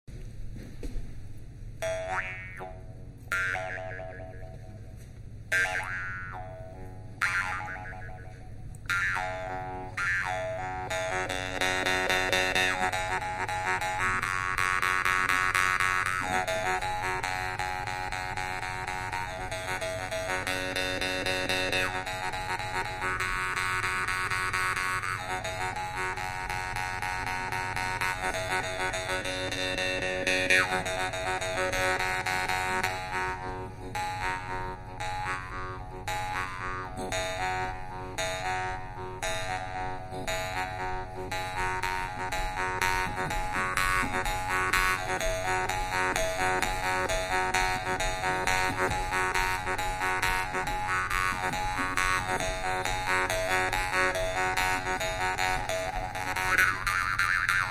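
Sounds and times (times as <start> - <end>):
xomus jaw harp: 1.8 - 57.6.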